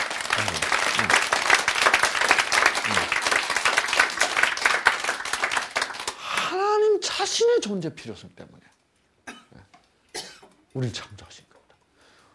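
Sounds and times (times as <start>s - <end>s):
audience applauding: 0.0s - 6.5s
speech: 0.4s - 1.2s, 7.2s - 8.8s, 10.8s - 11.5s.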